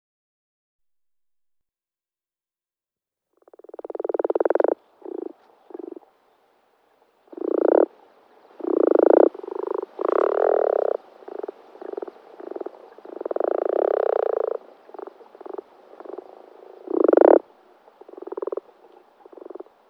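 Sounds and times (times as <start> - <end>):
common frog croaking: 3.4 - 6.1, 7.2 - 8.0, 8.6 - 19.8.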